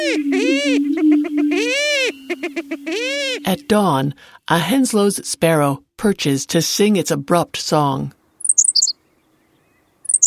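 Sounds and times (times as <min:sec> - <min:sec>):
greater prairie chickens whooping in courtship displays: 0:00.0 - 0:04.2
speech: 0:03.5 - 0:08.2.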